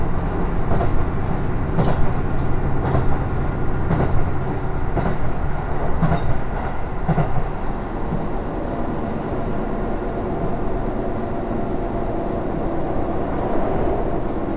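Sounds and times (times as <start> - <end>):
local train on the Takayama Main Line rumbling: 0.0 - 14.5
rail-joint clacks: 0.4 - 8.3.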